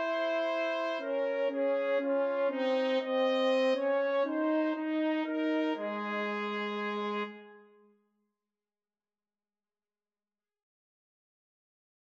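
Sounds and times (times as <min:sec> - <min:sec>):
French horn: 0:00.0 - 0:07.9
trumpet: 0:00.0 - 0:07.9.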